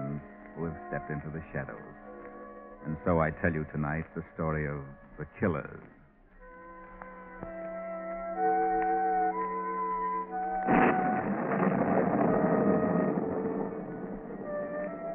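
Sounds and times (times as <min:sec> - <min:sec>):
sustained droning musical chord: 0:00.0 - 0:15.1
speech: 0:00.9 - 0:02.0, 0:02.8 - 0:05.9
loud crash of thunder: 0:10.7 - 0:15.1
steady heavy hiss of torrential rain: 0:10.7 - 0:15.1.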